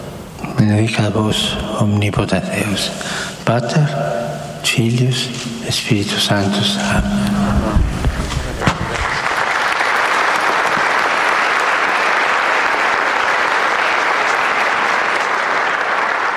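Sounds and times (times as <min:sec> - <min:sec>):
speech: 0:00.6 - 0:08.0
pilgrims applauding in a hall: 0:08.5 - 0:16.3.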